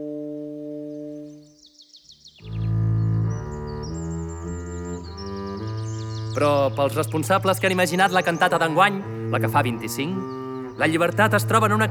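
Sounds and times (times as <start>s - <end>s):
birdsong: 0.0s - 11.8s
speech: 6.4s - 11.8s.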